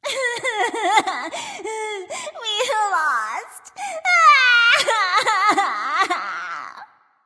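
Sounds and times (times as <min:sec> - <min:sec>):
person crying boo hoo: 0:00.0 - 0:02.9, 0:04.0 - 0:06.9.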